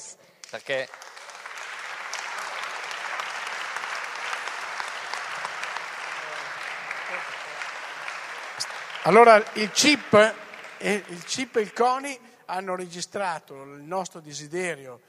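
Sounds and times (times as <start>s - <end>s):
crowd applause honouring athletes at a sports event: 0.4s - 12.2s
speech: 0.5s - 1.1s, 9.0s - 15.0s.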